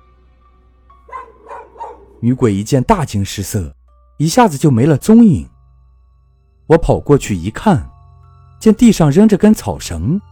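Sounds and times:
dog barking: 1.1s - 2.2s
speech: 2.2s - 5.5s, 6.7s - 7.9s, 8.6s - 10.3s.

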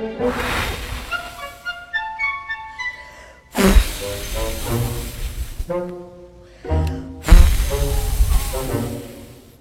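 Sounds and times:
voice imitating a wolf blowing at a house: 0.2s - 1.8s, 3.5s - 5.8s, 7.2s - 9.5s.

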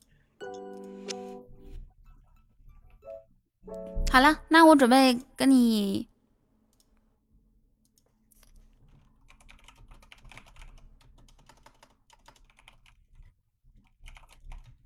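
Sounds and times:
typing on a gaming keyboard: 0.0s - 1.5s, 7.9s - 14.8s
speech: 4.1s - 6.1s.

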